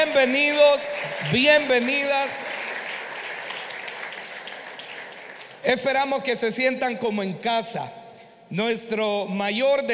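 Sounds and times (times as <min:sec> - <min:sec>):
speech: 0:00.0 - 0:02.6, 0:05.6 - 0:09.9
audience applauding: 0:00.0 - 0:05.7.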